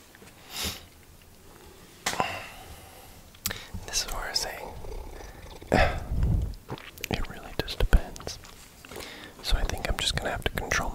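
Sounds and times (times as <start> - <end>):
soft airy breaths: 0.3 - 6.5, 7.1 - 10.9.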